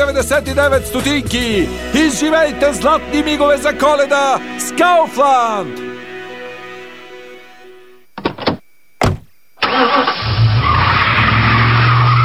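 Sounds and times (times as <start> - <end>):
speech: 0.0 - 5.8
car door thudding: 8.2 - 9.3
car tires screeching as the car speeds off: 9.7 - 12.2.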